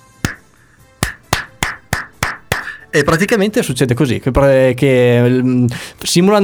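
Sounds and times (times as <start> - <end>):
slow hand claps imitating Icelandic geyser clap: 0.0 - 3.2
speech: 2.9 - 6.4.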